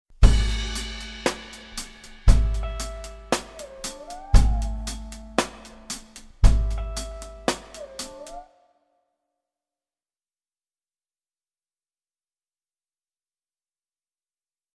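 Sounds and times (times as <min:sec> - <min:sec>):
solo drum kit: 0:00.2 - 0:08.4.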